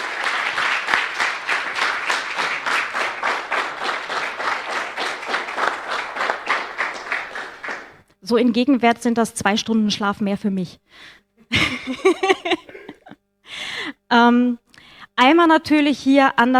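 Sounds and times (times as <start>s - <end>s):
audience applause: 0.0s - 8.0s
speech: 8.3s - 11.2s, 11.9s - 12.6s, 14.1s - 14.6s, 15.2s - 16.5s
laughter: 11.5s - 13.2s.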